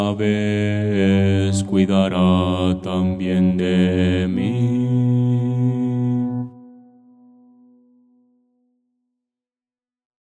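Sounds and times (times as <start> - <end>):
bass playing Christian hymns: 0.0 - 6.5.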